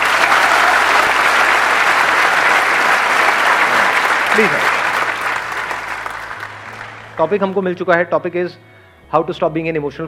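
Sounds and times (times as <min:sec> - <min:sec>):
audience applause: 0:00.0 - 0:07.6
speech: 0:04.4 - 0:04.6, 0:07.2 - 0:10.0.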